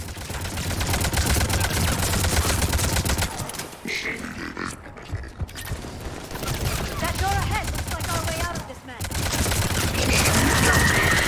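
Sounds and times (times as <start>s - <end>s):
video game gunfire: 0.0s - 3.8s, 5.4s - 11.2s.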